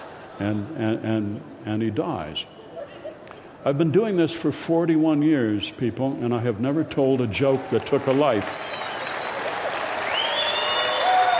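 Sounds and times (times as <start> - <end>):
speech: 0.4 - 2.6, 3.6 - 8.7
audience applauding a comedian after a joke: 7.4 - 11.3.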